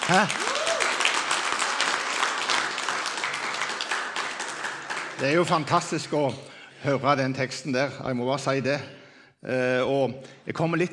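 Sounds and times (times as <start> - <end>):
crowd applause: 0.0 - 5.9
speech: 0.1 - 0.5, 5.2 - 10.9.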